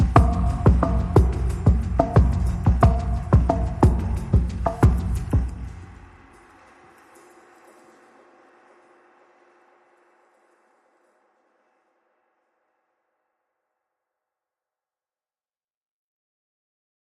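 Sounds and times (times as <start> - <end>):
drums: 0.0 - 8.7.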